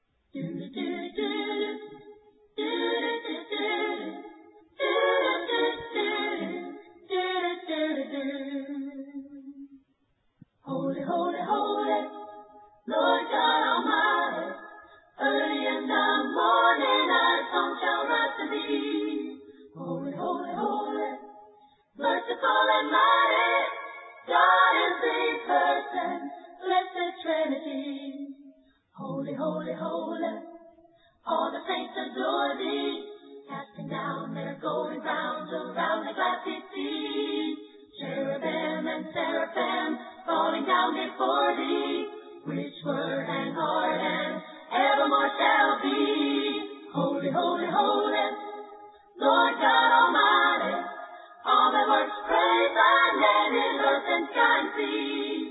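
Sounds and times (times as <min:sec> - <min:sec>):
a cappella hymn: 0:00.3 - 0:09.8, 0:10.6 - 0:55.4.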